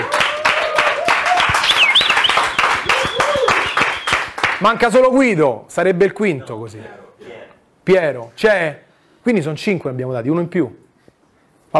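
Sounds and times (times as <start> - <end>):
cheers and whistles: 0.0 - 4.4
applause: 0.0 - 4.8
speech: 4.6 - 7.3, 7.9 - 10.8.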